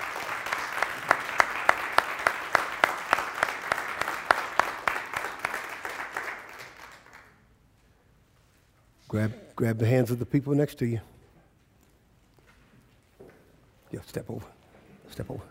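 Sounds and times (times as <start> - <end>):
audience hand clapping: 0.0 - 7.5
speech: 9.1 - 11.2.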